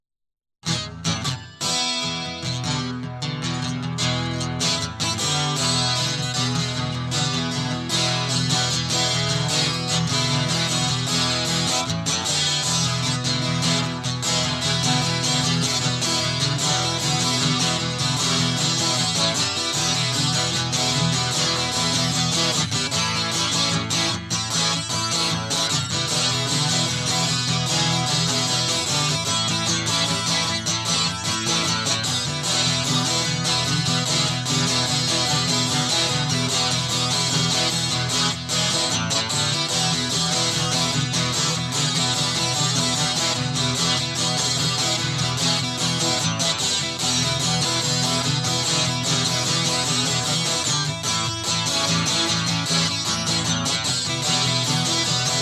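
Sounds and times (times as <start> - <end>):
guitar: 0.0 - 55.4.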